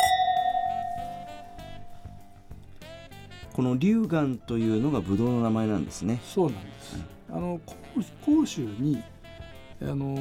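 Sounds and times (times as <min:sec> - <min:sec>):
wine glasses clinking in a toast: 0:00.0 - 0:02.3
speech: 0:03.6 - 0:09.1, 0:09.8 - 0:10.1.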